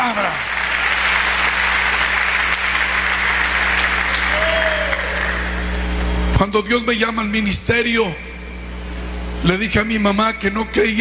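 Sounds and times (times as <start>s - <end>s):
audience applauding: 0.0s - 6.0s
speech: 6.5s - 8.3s, 9.4s - 10.9s.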